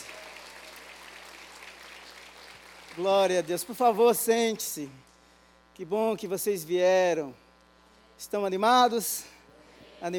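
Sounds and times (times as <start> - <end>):
audience applauding: 0.0 - 4.0
speech: 3.0 - 5.1, 5.8 - 7.4, 8.2 - 9.3, 10.0 - 10.1.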